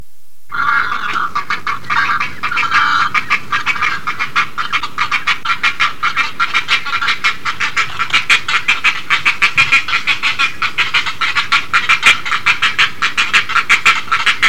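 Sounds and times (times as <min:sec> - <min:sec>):
great egret rasping calls: 0:00.5 - 0:14.4.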